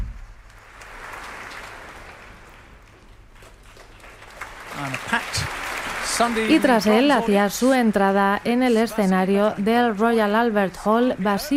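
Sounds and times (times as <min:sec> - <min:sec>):
concert hall audience applause at the Royal Albert Hall: 0:00.5 - 0:10.2
speech: 0:04.8 - 0:05.6, 0:06.2 - 0:11.5.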